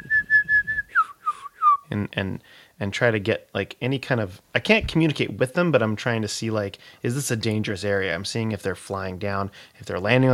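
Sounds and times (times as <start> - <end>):
person whistling imitation of bird calls: 0.0 - 1.9
speech: 1.9 - 10.3.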